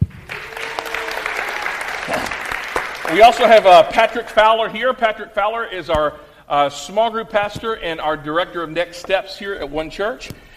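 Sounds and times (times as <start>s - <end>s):
audience applause: 0.0s - 4.1s
speech: 3.1s - 10.4s.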